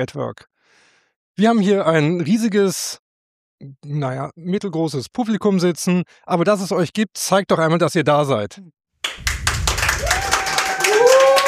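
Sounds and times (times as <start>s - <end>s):
speech: 0.0s - 0.5s, 1.4s - 3.0s, 3.6s - 9.3s
live audience applauding: 9.1s - 11.4s.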